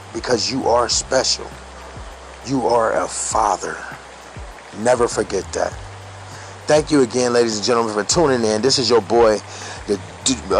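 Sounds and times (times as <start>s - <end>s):
rain from a storm outside: 0.0s - 10.5s
speech: 0.2s - 1.7s, 2.4s - 4.0s, 4.8s - 5.8s, 6.7s - 10.5s.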